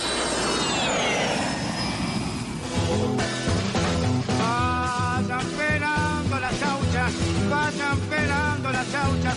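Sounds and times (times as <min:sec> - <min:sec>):
jet airplane roar flight sound effect: 0:00.0 - 0:04.8
music: 0:02.6 - 0:09.3.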